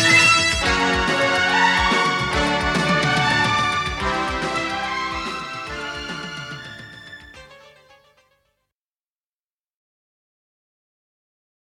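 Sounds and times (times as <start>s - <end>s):
music: 0.0s - 8.7s.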